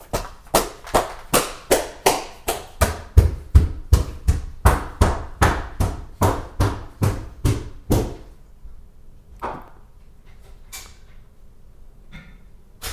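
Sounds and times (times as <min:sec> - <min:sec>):
stomping footsteps on stairs: 0:00.0 - 0:08.3.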